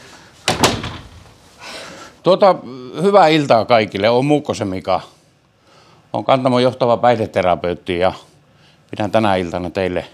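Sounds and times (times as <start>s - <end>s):
door slamming shut: 0.4s - 1.4s
speech: 2.2s - 5.1s, 6.1s - 8.3s, 8.9s - 10.1s.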